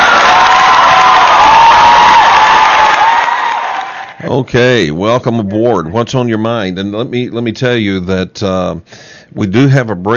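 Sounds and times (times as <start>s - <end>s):
played applause and cheering effect: 0.0s - 4.2s
speech: 4.4s - 10.1s.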